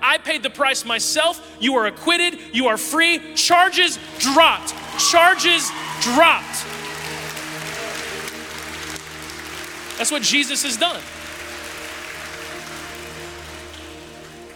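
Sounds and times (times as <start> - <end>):
speech: 0.1 - 6.8, 10.0 - 11.2
audience cheering: 4.1 - 14.5.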